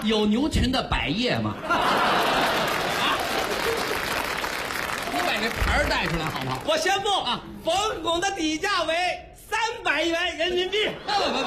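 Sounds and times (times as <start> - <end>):
speech: 0.0 - 2.5, 5.4 - 11.4
laughter: 1.5 - 4.3, 10.6 - 11.4
audience applause at a stage comedy performance: 1.8 - 6.8.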